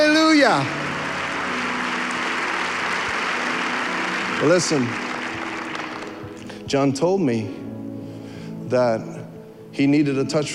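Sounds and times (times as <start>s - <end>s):
audience clapping: 0.0s - 6.6s
speech: 0.4s - 0.8s, 4.4s - 5.1s, 6.7s - 7.6s, 8.7s - 10.5s.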